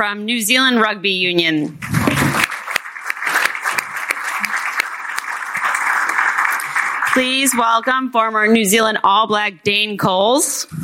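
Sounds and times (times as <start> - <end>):
speech: 0.0 - 1.9, 7.2 - 10.8
audience applause at a rugby lunch: 1.8 - 7.8.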